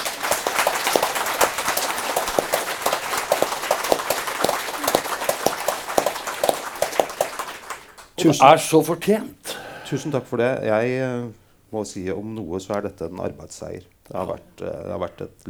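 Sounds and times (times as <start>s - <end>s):
audience applause: 0.0s - 9.2s
speech: 8.2s - 15.4s.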